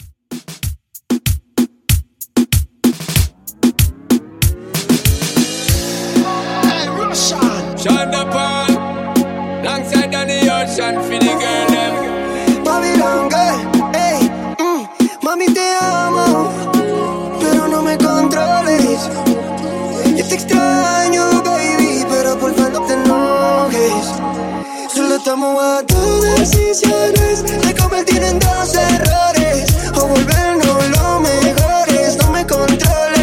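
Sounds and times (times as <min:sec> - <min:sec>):
moombahton music at 95 bpm: 0:00.0 - 0:33.2.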